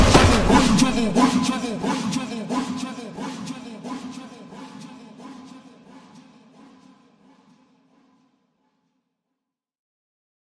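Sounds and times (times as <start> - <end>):
ultra slowed reverb music: 0.0 - 4.0.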